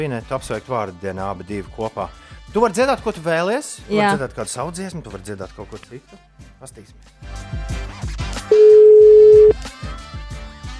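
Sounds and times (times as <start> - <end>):
speech: 0.0 - 7.7
telephone ringback tone: 8.5 - 9.6.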